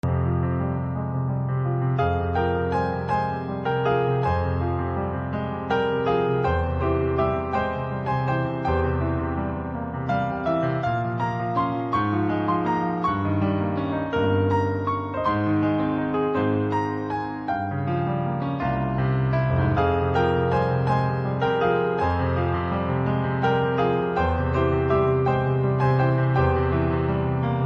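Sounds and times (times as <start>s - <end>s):
song with piano: 0.0s - 27.6s.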